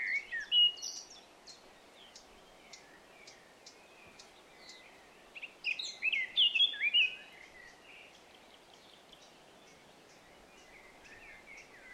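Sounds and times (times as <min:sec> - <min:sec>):
Eurasian blackcap song: 0:00.0 - 0:11.9.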